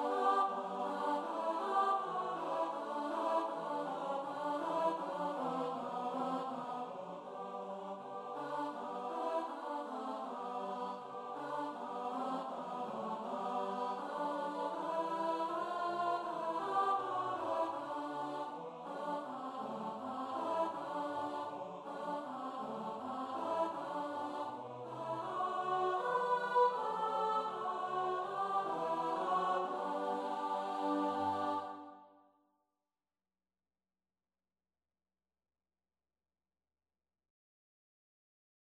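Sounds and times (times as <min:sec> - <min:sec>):
choir singing a choral arrangement: 0:00.0 - 0:32.1.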